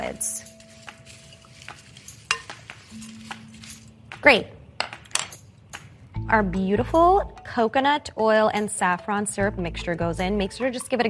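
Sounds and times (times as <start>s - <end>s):
speech: 0.0s - 0.5s, 4.2s - 4.6s, 6.3s - 11.0s
dry ingredients tossed in a bowl: 0.0s - 4.4s
utensil clinking against the bowl: 0.0s - 6.0s.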